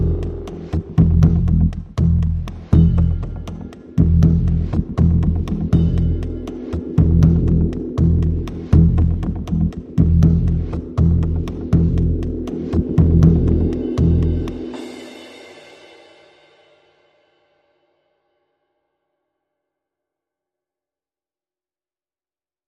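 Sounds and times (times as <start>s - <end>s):
dark time ticking: 0.0s - 14.8s.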